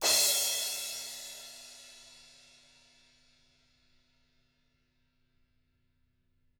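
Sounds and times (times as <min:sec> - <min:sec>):
TAMA drums: 0:00.0 - 0:03.2.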